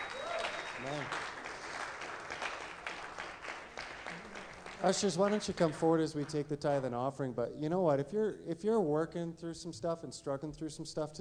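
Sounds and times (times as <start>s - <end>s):
audience clapping: 0.0s - 6.5s
speech: 4.8s - 11.1s.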